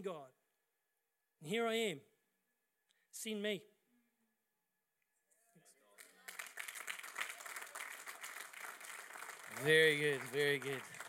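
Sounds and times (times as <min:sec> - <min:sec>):
speech: 0:00.0 - 0:00.4, 0:01.4 - 0:02.1, 0:03.1 - 0:03.7, 0:09.6 - 0:11.0
quiet audience clapping: 0:05.9 - 0:11.0.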